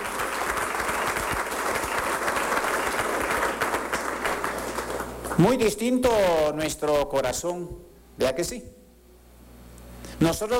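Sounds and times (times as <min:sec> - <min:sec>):
audience applauding: 0:00.0 - 0:05.6
speech: 0:05.4 - 0:08.7, 0:10.2 - 0:10.5.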